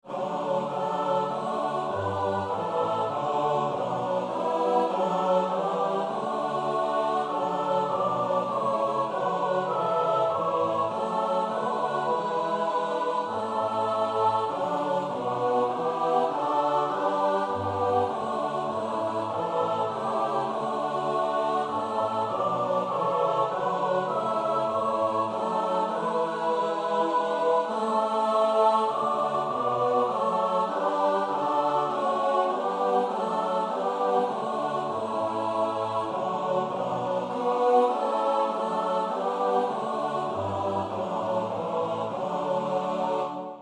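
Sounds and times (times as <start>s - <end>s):
soprano alto tenor bass choir: 0.0s - 43.6s.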